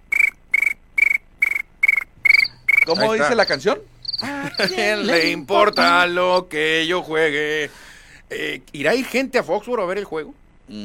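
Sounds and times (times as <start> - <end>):
crickets chirping: 0.0 - 6.6
speech: 2.9 - 10.8
laughter: 4.2 - 6.1.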